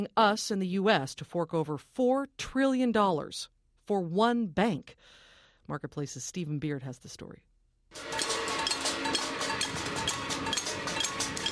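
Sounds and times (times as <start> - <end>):
speech: 0.0 - 8.2
protesters banging pots and pans outside parliament: 7.9 - 11.5
protesters banging gongs: 8.0 - 11.5.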